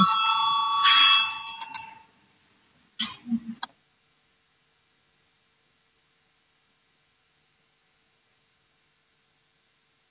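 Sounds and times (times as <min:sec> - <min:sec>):
bell ringing in a parliament chamber to call members to a vote: 0:00.0 - 0:02.1.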